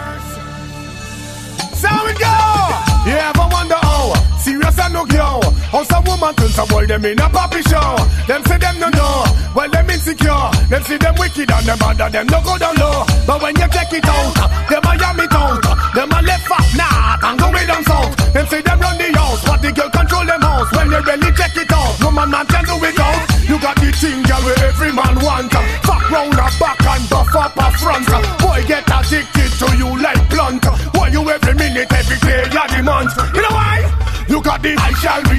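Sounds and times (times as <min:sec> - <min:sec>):
oriental riddim: 0:01.6 - 0:35.3.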